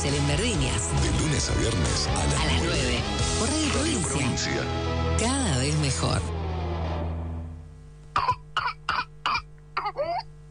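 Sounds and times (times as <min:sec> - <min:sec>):
speech: 0:00.0 - 0:06.4
intense whooping cough coughing: 0:08.2 - 0:10.3.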